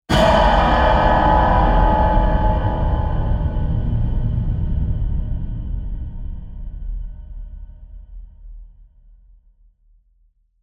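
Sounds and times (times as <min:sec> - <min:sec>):
metal hit: 0:00.1 - 0:05.4.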